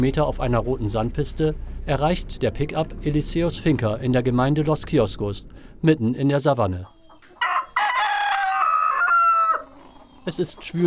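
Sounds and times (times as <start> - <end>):
speech: 0.0 - 7.0, 10.3 - 10.8
rooster crowing on a farm in the savanna: 7.4 - 9.9.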